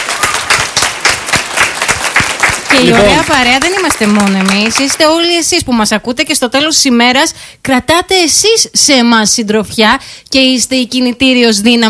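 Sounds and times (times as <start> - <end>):
applause: 0.0 - 5.4
speech: 2.8 - 11.8.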